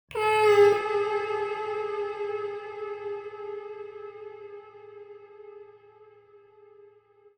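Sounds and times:
vocal samples at 130 bpm in A minor: 0.1 - 3.1.

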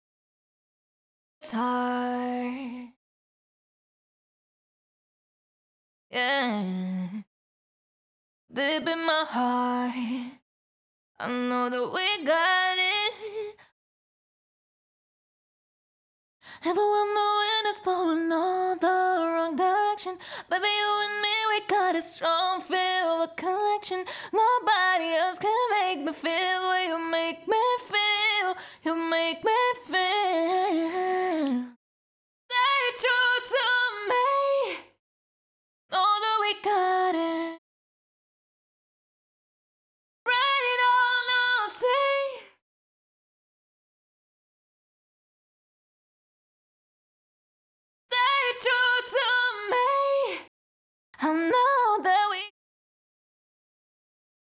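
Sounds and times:
pop vocals a cappella in E major: 1.4 - 3.0, 6.1 - 7.3, 8.5 - 10.4, 11.2 - 13.6, 16.5 - 31.8, 32.5 - 35.0, 35.9 - 37.6, 40.3 - 42.6, 48.1 - 50.5, 51.2 - 52.6.

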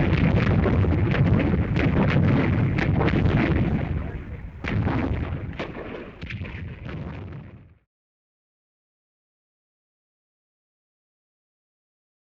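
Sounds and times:
distant explosions in a battle scene: 0.0 - 7.8.

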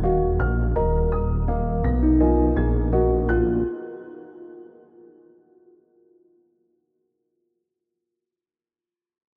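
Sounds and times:
dark melody loop at 83 BPM in C minor: 0.0 - 5.2.

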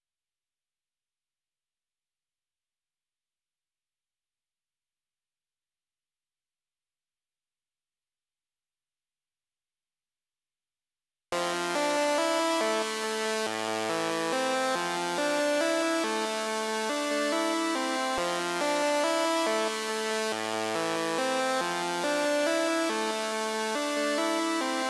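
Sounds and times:
synth lead melody in A minor: 11.4 - 24.8.

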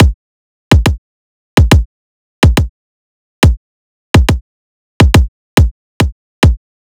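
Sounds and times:
riddim kick drum loop: 0.0 - 1.0, 1.6 - 2.7, 4.2 - 4.4, 5.0 - 6.6.

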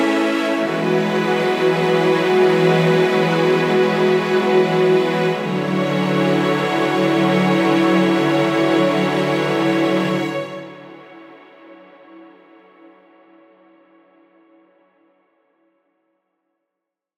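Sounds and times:
strings in F sharp minor: 0.0 - 13.2.

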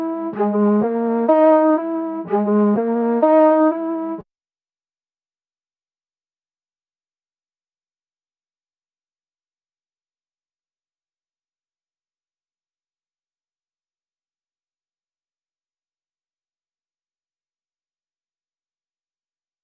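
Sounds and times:
flute melody loop in G sharp minor: 0.0 - 4.2.

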